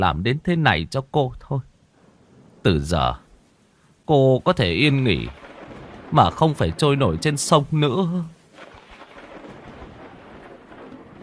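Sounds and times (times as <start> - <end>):
speech: 0.0 - 1.7, 2.6 - 3.2, 4.1 - 5.5, 6.1 - 8.4
heavy rain: 0.0 - 11.2
thunder: 5.1 - 7.4, 8.5 - 11.2.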